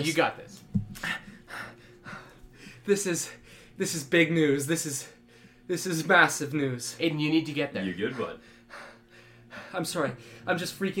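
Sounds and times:
speech: 0:00.0 - 0:01.1, 0:02.9 - 0:08.8, 0:09.6 - 0:10.9
heavy panting: 0:01.0 - 0:03.8, 0:07.9 - 0:10.5.

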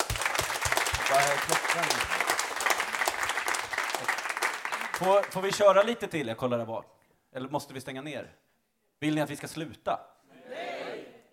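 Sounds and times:
audience applause: 0:00.0 - 0:05.9
speech: 0:01.2 - 0:02.2, 0:05.0 - 0:08.4, 0:09.0 - 0:10.1.

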